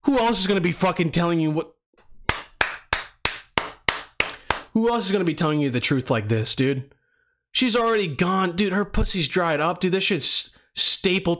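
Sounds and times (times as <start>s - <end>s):
speech: 0.1s - 1.8s, 4.8s - 7.0s, 7.6s - 11.3s
audience hand claps: 2.2s - 4.8s.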